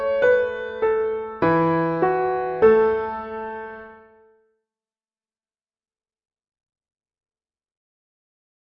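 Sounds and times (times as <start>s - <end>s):
folk tune melody: 0.0s - 4.1s.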